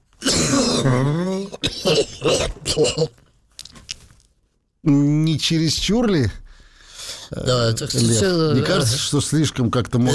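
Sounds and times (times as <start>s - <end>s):
person imitating a deep guttural cough: 0.2s - 3.2s
speech: 0.8s - 3.2s, 4.8s - 6.4s, 7.3s - 10.1s.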